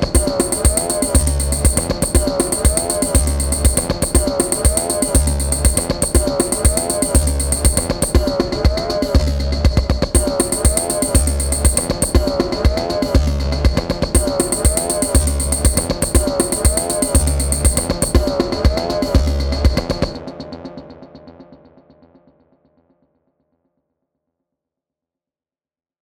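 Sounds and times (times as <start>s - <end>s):
CR-78 drum machine rhythm: 0.1s - 12.8s, 14.1s - 20.2s.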